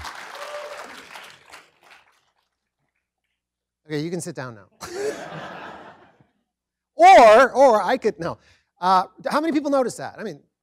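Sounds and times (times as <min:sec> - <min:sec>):
audience round of applause: 0:00.0 - 0:02.6
speech: 0:03.9 - 0:05.6, 0:07.0 - 0:10.5
laughter: 0:04.8 - 0:06.3.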